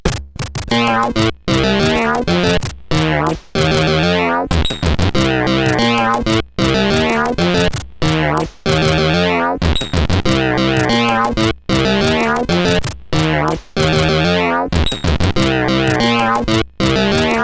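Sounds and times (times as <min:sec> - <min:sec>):
birthday tune on CSG8580R5 sound chip: 0:00.0 - 0:17.4.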